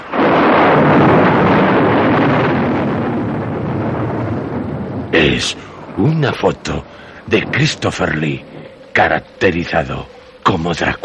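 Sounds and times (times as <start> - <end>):
thunder clap from a lightning strike: 0.0 - 11.0
speech: 5.4 - 11.0.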